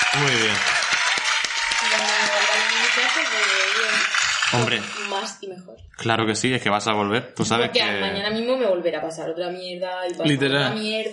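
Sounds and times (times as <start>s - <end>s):
audience applause: 0.0s - 5.4s
speech: 0.1s - 0.8s, 3.0s - 11.1s.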